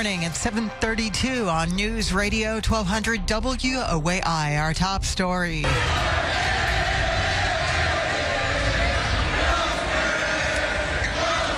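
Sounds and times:
speech: 0.0s - 6.2s
basketball fans roaring and cheering at a watch party: 5.6s - 11.5s
overlapping voices and shouting: 5.7s - 11.5s.

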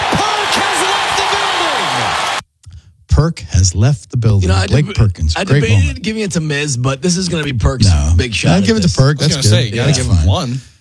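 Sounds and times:
game-ball slam sound effect of crowd roar with shouting: 0.0s - 2.4s
speech: 3.2s - 10.7s.

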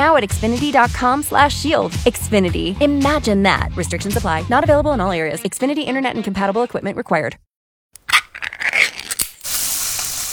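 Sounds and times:
speech: 0.1s - 7.5s
Spam sizzling: 8.0s - 10.3s.

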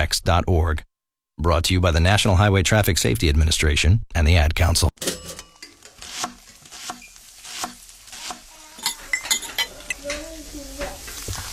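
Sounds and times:
speech: 0.1s - 5.1s
utensils clinking against a pan: 5.0s - 11.3s
frying food sizzling in a pan: 5.6s - 11.5s.

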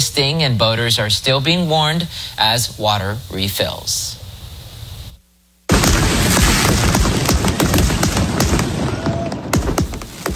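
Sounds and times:
speech: 0.2s - 4.1s
fireworks exploding at Bree Stevens Field in Madison: 5.7s - 10.3s.

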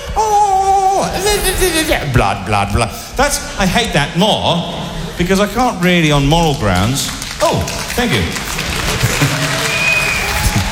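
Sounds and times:
laughter: 1.1s - 2.2s, 8.8s - 9.8s
speech: 1.3s - 8.7s
scattered rippling applause from a live audience: 6.5s - 10.7s.

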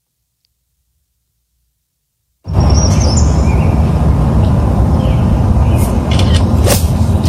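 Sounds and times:
whippoorwill singing outdoors: 2.5s - 7.2s.

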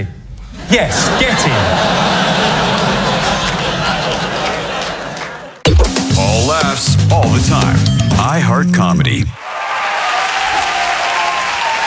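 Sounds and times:
speech: 0.0s - 2.5s, 6.8s - 9.4s
laughter: 0.7s - 5.6s
crowd applauding: 2.2s - 5.6s, 9.4s - 11.8s.

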